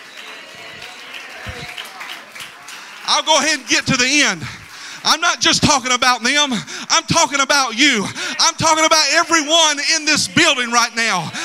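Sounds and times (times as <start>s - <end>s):
audience clapping hands: 0.0s - 5.9s
speech: 3.1s - 11.4s.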